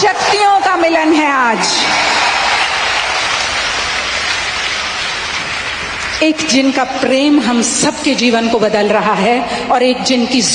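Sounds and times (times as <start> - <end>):
crowd applauding: 0.0 - 7.0
speech: 0.8 - 2.2, 6.2 - 10.5.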